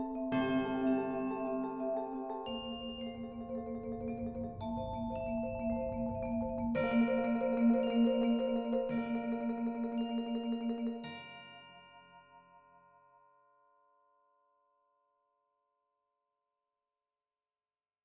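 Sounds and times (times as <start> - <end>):
two marimbas in a percussion ensemble: 0.0 - 12.5
vibraphone in a percussion ensemble: 0.0 - 12.8
xylophone in a percussion ensemble: 0.0 - 12.8
bells in a percussion ensemble: 0.0 - 14.2
chimes in a percussion ensemble: 0.0 - 15.9.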